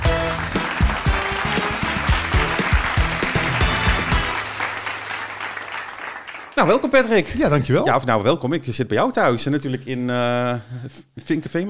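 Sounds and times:
applause: 0.0 - 7.2
speech: 6.6 - 11.6.

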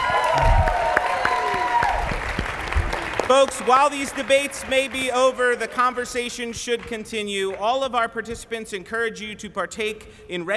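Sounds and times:
audience applause: 0.0 - 6.4
speech: 3.3 - 10.5.

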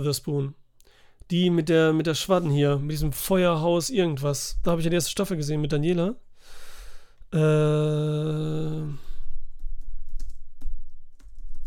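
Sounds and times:
speech: 0.0 - 0.6, 1.3 - 6.6, 7.3 - 9.1
typing on a computer keyboard: 10.1 - 11.6.

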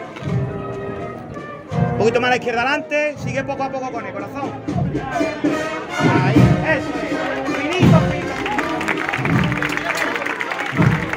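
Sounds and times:
speech: 2.0 - 6.4
audience applause: 6.8 - 11.1.

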